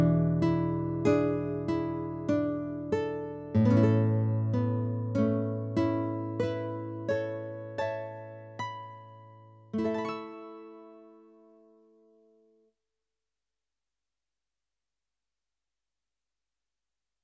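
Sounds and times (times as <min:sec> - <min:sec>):
guitar: 0:00.0 - 0:12.4.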